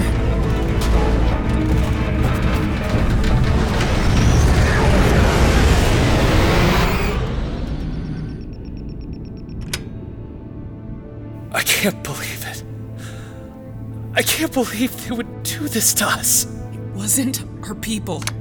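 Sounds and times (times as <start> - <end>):
gunfire and explosions from an attack on a city: 0.0 - 9.8
speech: 14.4 - 18.3.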